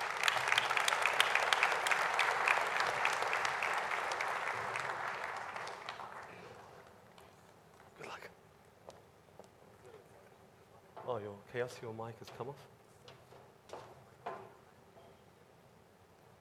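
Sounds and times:
audience applauding a speaker at an event on future cities: 0.0 - 7.2
speech: 11.5 - 12.8.

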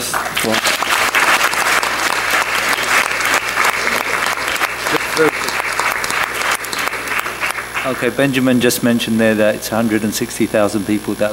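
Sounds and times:
audience applause: 0.0 - 8.5
speech: 0.4 - 0.8, 7.9 - 11.3.

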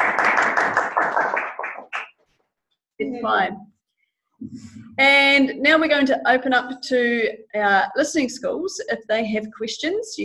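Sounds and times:
burst of applause from a group: 0.0 - 2.2
speech: 3.2 - 3.7, 4.5 - 10.2.

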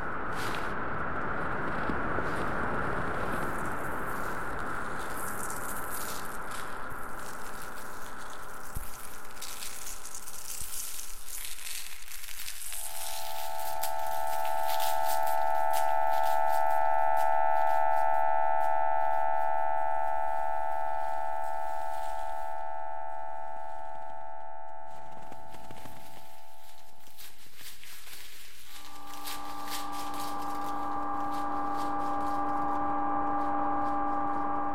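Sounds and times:
crackling hiss in a generative ambient piece: 0.0 - 24.2, 24.9 - 34.7
sustained chord tones in a generative ambient piece: 12.8 - 27.0, 28.7 - 34.7.

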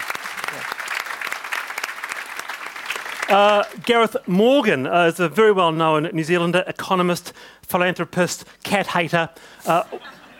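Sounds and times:
audience applause: 0.0 - 3.9
speech: 3.3 - 10.2.

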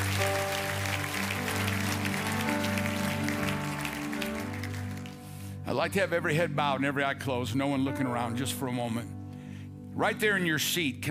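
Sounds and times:
audience clapping hands: 0.0 - 5.6
speech: 5.8 - 9.2, 10.0 - 11.1.

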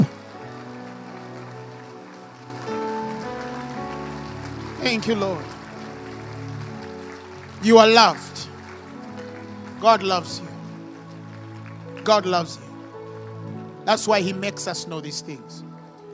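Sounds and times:
audience clapping hands: 0.0 - 15.2
speech: 4.8 - 5.6, 7.6 - 8.5, 9.8 - 10.5, 12.0 - 12.6, 13.9 - 15.7.

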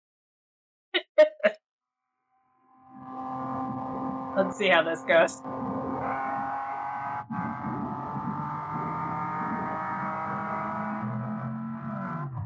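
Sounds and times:
car engine revving: 2.8 - 12.4
speech: 4.4 - 5.6.

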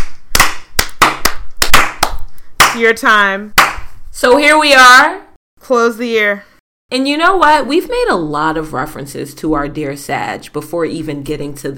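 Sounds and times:
hand claps: 0.0 - 2.8, 3.6 - 3.9
speech: 2.8 - 11.7.

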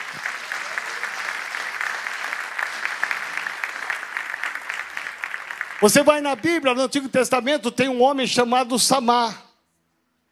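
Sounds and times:
audience applause: 0.0 - 6.7
speech: 5.8 - 9.4.

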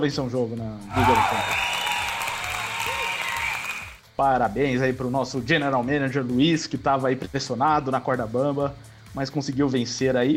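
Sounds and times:
speech: 0.0 - 1.8, 4.2 - 10.3
applause sound effect: 0.9 - 4.0.

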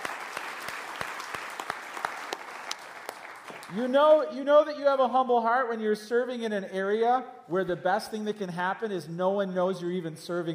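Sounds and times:
audience applause: 0.0 - 3.8
speech: 3.7 - 10.5.

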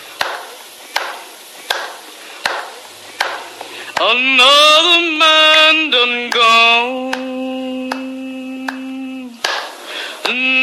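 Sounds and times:
swift hand claps echoing: 0.2 - 4.3, 5.4 - 10.4
faint low hum: 2.2 - 10.6
speech: 4.0 - 7.8.

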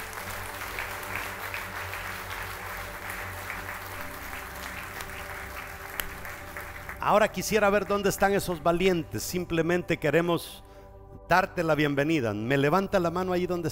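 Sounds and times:
audience applause: 0.0 - 7.9
speech: 7.0 - 10.7, 11.3 - 13.6.

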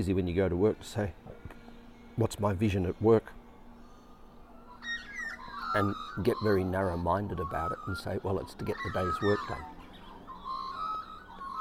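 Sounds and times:
speech: 0.0 - 1.2, 2.2 - 3.4, 5.7 - 9.8
birds singing: 0.0 - 11.5.

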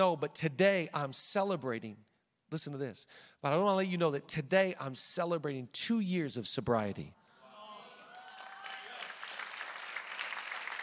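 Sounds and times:
speech: 0.0 - 7.2
faint whistles and cheers: 7.9 - 9.2
crowd applause: 7.9 - 10.8.

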